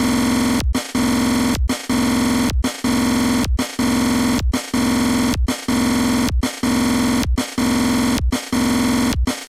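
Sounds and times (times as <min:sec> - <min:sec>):
drum loop: 0:00.0 - 0:09.4.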